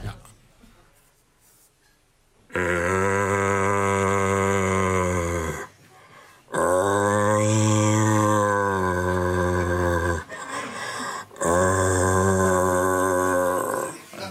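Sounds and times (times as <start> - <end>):
person imitating a rutting deer's bellow: 2.5 - 5.7, 6.5 - 10.3, 11.4 - 14.1.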